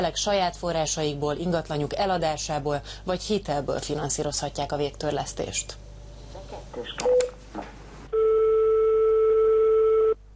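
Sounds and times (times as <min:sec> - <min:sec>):
speech: 0:00.0 - 0:05.8, 0:06.7 - 0:07.1
telephone line ringing tone: 0:08.2 - 0:10.2.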